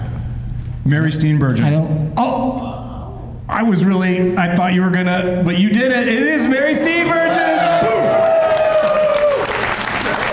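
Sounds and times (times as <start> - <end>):
speech: 0.8 - 2.8, 3.5 - 8.0
applause: 7.6 - 10.3.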